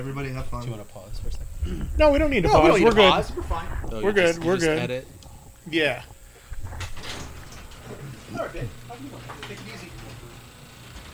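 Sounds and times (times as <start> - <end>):
speech: 0.0 - 6.2, 7.9 - 9.9
garage door opening: 6.6 - 11.1.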